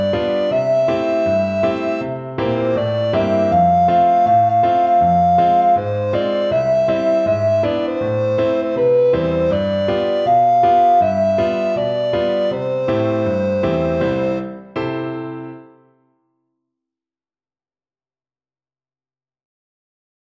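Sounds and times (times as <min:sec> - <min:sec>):
alto recorder melody: 0:00.0 - 0:15.7.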